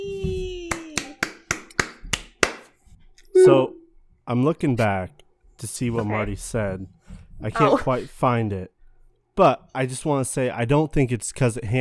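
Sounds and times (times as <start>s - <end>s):
applause: 0.7s - 2.7s
speech: 4.3s - 8.8s, 9.4s - 11.7s.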